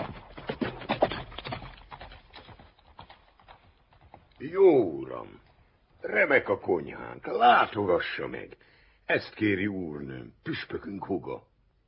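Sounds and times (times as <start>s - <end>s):
horse hooves clip-clopping: 0.0s - 6.0s
speech: 4.4s - 5.4s, 6.0s - 11.5s.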